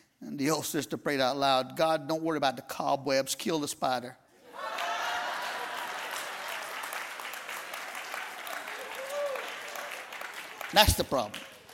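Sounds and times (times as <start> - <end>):
speech: 0.4 - 4.2, 10.7 - 11.5
audience clapping: 4.6 - 11.7.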